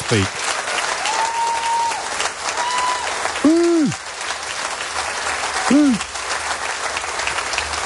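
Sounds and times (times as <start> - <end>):
crowd cheering: 0.0 - 7.8.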